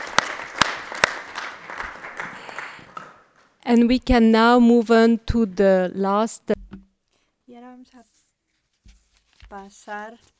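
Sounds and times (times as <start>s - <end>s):
applause: 0.0s - 3.6s
speech: 3.7s - 6.7s, 7.6s - 8.2s, 9.5s - 10.3s.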